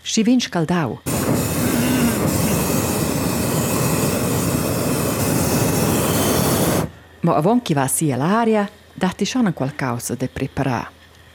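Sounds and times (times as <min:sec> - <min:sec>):
speech: 0:00.2 - 0:01.5, 0:07.2 - 0:11.0
hot air balloon burner roaring: 0:01.1 - 0:07.0.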